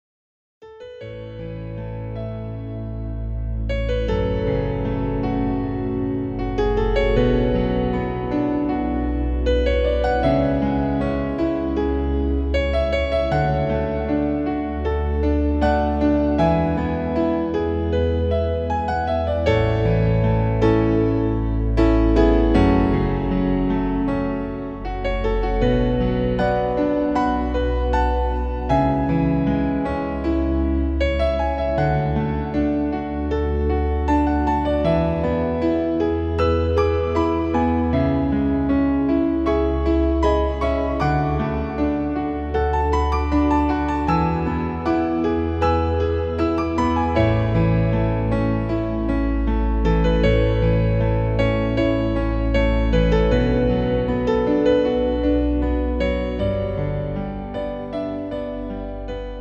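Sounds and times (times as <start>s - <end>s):
romantic piano music: 0.6s - 59.3s.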